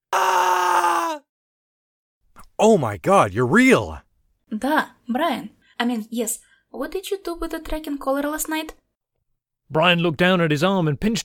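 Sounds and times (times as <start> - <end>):
man screaming: 0.1 - 1.3
speech: 2.6 - 8.8, 9.7 - 11.2.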